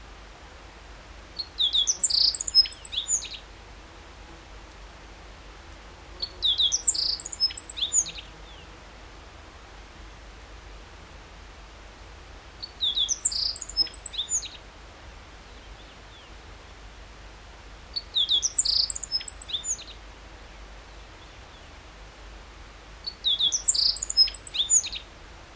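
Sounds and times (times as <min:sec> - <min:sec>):
meadow bunting singing: 0:01.4 - 0:03.4, 0:06.2 - 0:08.7, 0:12.6 - 0:14.6, 0:18.0 - 0:20.0, 0:23.0 - 0:25.0.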